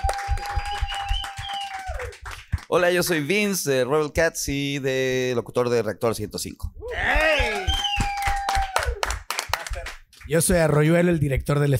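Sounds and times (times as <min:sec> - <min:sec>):
audience applause: 0:00.0 - 0:03.2, 0:07.4 - 0:10.3
speech: 0:02.7 - 0:07.5, 0:10.3 - 0:11.7.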